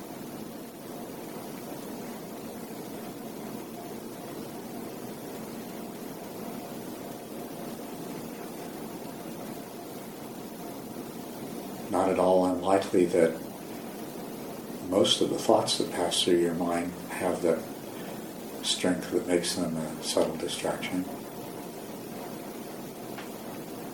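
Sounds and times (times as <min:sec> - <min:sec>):
air conditioning hum: 0:00.0 - 0:23.9
speech: 0:12.1 - 0:13.4, 0:15.0 - 0:17.7, 0:18.8 - 0:21.2.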